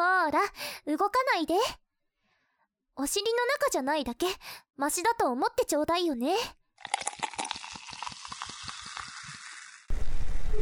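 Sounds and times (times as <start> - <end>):
speech: 0.3 - 1.8, 3.0 - 7.2
carbonated liquid fizzing in the ear: 6.8 - 10.5.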